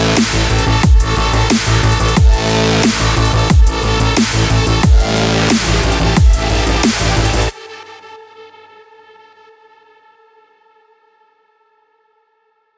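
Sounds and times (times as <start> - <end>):
extreme action sport music: 0.0 - 7.6.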